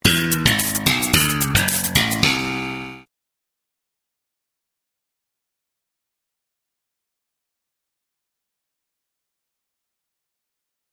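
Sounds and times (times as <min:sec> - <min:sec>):
sitcom bass riff: 0:00.0 - 0:03.1.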